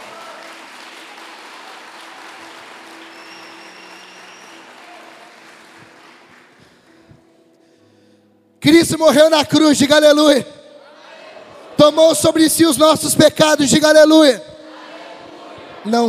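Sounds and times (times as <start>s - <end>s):
audience applause: 0.0s - 6.9s
speech: 8.6s - 10.6s, 11.9s - 14.5s, 15.8s - 16.0s.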